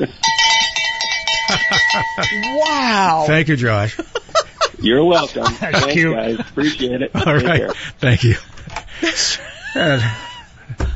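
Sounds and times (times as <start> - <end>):
laughter: 0.0 - 0.2, 1.5 - 2.5, 3.8 - 10.9
speech: 0.0 - 0.3, 1.5 - 4.2, 4.8 - 8.5, 9.1 - 10.8
bell ringing: 0.1 - 3.4.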